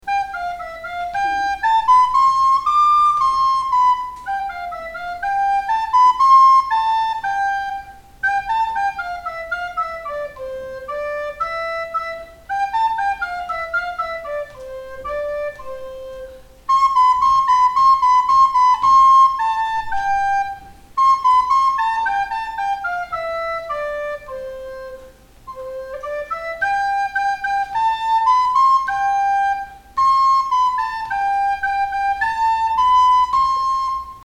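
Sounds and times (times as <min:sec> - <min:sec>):
flute playing a pastoreta: 0:00.0 - 0:34.2.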